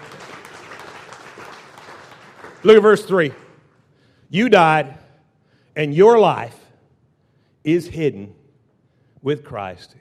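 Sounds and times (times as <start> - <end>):
audience clapping: 0.0 - 3.8
speech: 2.6 - 3.4, 4.3 - 5.0, 5.8 - 6.6, 7.6 - 8.4, 9.2 - 9.9.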